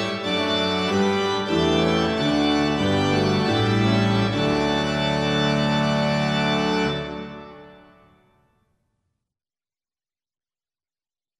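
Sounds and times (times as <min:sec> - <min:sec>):
organ playing a hymn: 0:00.0 - 0:08.4.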